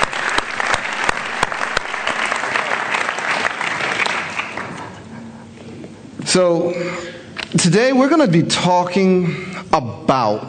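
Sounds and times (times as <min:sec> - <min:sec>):
audience hand clapping: 0:00.0 - 0:05.1
speech: 0:06.3 - 0:10.4.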